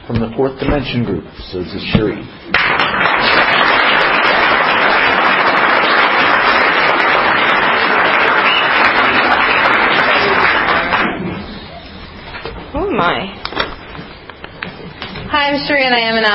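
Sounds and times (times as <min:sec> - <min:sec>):
speech: 0:00.1 - 0:03.0, 0:15.5 - 0:16.3
applause at an Alcoholics Anonymous meeting welcoming a speaker: 0:02.5 - 0:11.3.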